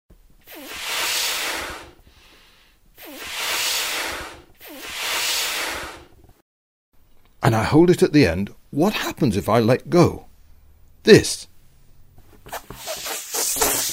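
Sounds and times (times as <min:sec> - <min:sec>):
balloon being blown up: 0:00.4 - 0:02.0, 0:03.0 - 0:06.2, 0:12.5 - 0:13.9
speech: 0:07.5 - 0:10.3, 0:11.0 - 0:11.5.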